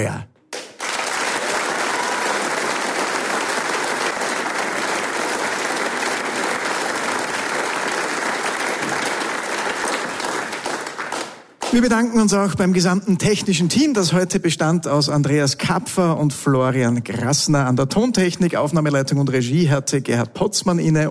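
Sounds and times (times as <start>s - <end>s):
speech: 0.0s - 0.3s, 11.7s - 21.1s
large audience applause: 0.5s - 12.0s.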